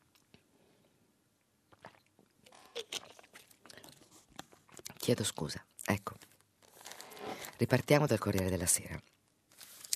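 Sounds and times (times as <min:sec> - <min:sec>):
person drinking mid-reading: 0:01.7 - 0:04.9
soft faint mouth and swallowing noises: 0:01.7 - 0:05.0
speech: 0:05.0 - 0:06.2, 0:07.6 - 0:09.1.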